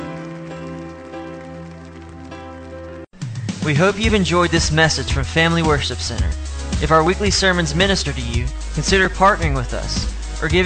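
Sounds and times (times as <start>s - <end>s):
audience crowd clapping: 0.0s - 3.2s
speech: 3.6s - 10.6s.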